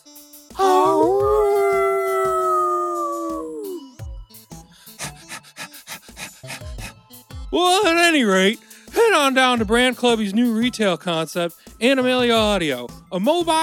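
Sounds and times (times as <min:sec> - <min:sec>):
Lhasa Apso dog howling: 0:00.6 - 0:04.0
Lhasa Apso dog panting: 0:04.8 - 0:07.1
speech: 0:07.6 - 0:13.6.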